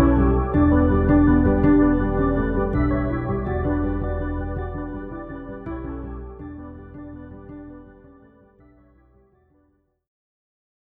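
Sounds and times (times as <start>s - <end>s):
sleepy ambient riff: 0.0s - 9.3s.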